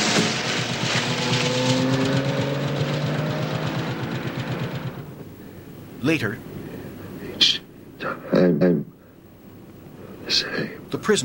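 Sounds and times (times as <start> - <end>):
car driving off: 0.0 - 5.1
speech: 6.0 - 6.5, 8.4 - 9.0, 10.3 - 11.2.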